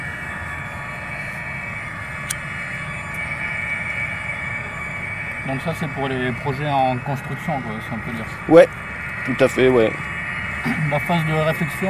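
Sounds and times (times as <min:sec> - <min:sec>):
wind-blown harmonica sound installation: 0:00.0 - 0:11.8
speech: 0:05.5 - 0:10.0, 0:10.6 - 0:11.8.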